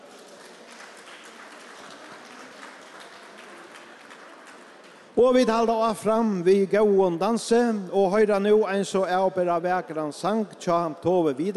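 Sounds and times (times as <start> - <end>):
audience applause: 0.0 - 5.2
speech: 5.2 - 11.5.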